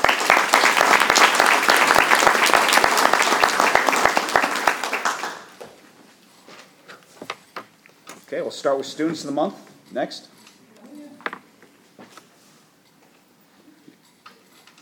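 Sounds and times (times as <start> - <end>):
round of applause: 0.0 - 5.6
speech: 8.4 - 10.3.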